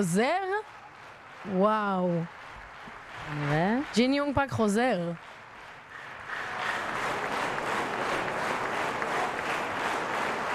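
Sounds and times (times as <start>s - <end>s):
speech: 0.0s - 0.8s, 1.4s - 2.4s, 3.2s - 5.3s
audience applause: 0.0s - 10.5s.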